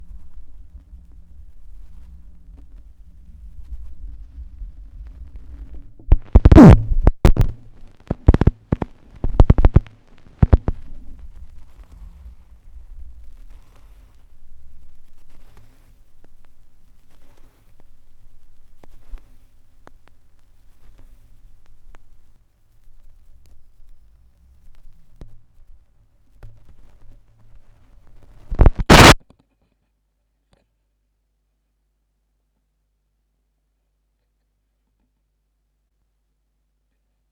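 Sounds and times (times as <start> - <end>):
vinyl record noise: 0.0 - 25.2, 28.1 - 29.2.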